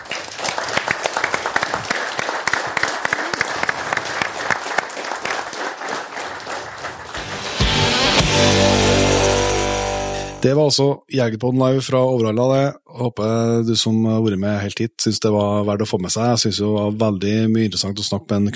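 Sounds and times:
audience applause: 0.0 - 9.8
speech: 10.4 - 18.5.

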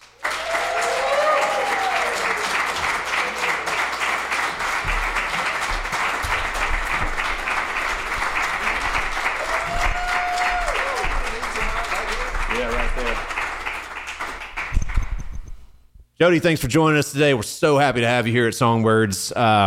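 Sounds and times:
crowd applauding a guest: 0.0 - 15.5
whoops and cheers: 0.3 - 3.7, 9.4 - 11.4
speech: 16.2 - 19.6.

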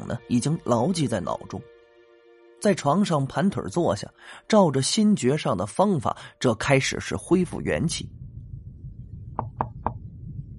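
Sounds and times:
speech: 0.1 - 1.7, 2.6 - 8.2
knocking on a door: 9.4 - 10.0.

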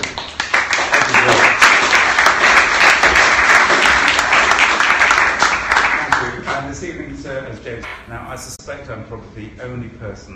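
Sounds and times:
evening audience applause welcoming a speaker to the lectern: 0.0 - 6.4
speech: 8.3 - 10.3.

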